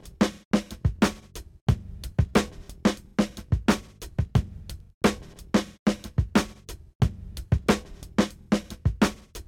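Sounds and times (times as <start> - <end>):
drum kit: 0.0 - 9.4.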